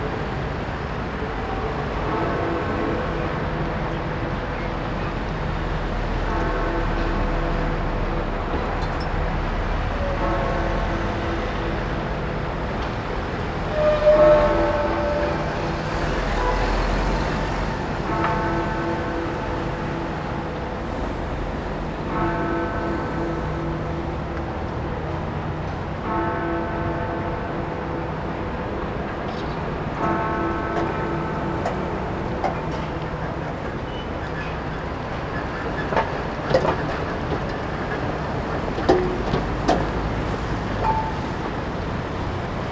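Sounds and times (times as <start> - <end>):
early morning traffic in Parliament Square London: 0.0 - 42.6.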